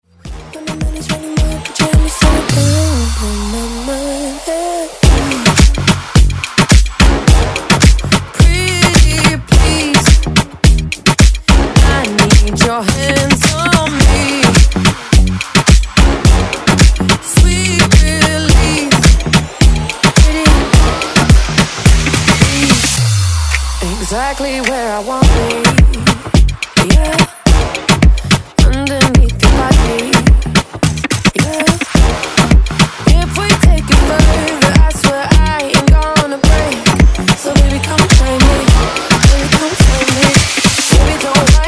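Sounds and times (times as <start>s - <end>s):
moombahton music intro: 0.0s - 41.6s.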